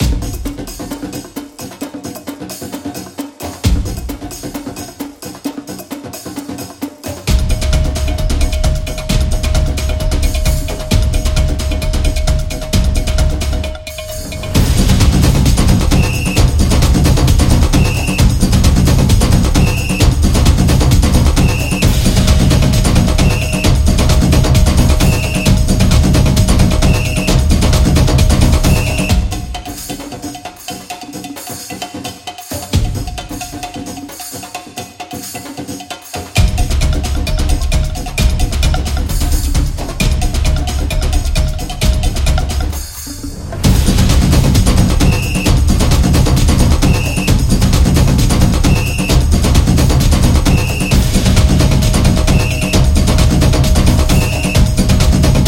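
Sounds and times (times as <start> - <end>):
samba percussion: 0.0 - 55.4.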